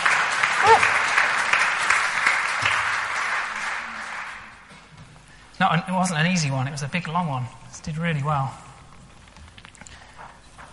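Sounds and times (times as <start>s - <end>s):
applause: 0.0s - 4.8s
speech: 5.6s - 8.6s.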